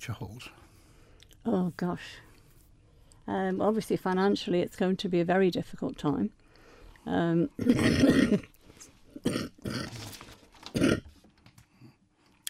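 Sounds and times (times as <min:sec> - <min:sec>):
speech: 0:00.0 - 0:00.8, 0:01.4 - 0:02.3, 0:03.3 - 0:06.4, 0:07.0 - 0:08.5, 0:09.2 - 0:09.9
person coughing: 0:07.6 - 0:08.5, 0:09.2 - 0:09.9, 0:10.8 - 0:11.0.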